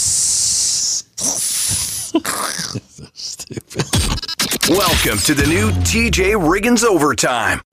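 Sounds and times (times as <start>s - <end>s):
person hissing in disapproval: 0.0s - 2.3s
speech: 4.8s - 7.6s.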